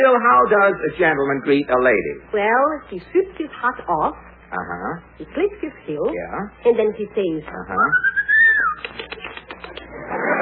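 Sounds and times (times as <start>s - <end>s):
speech: 0.0s - 8.1s
man wolf-whistling at a woman: 7.9s - 9.0s.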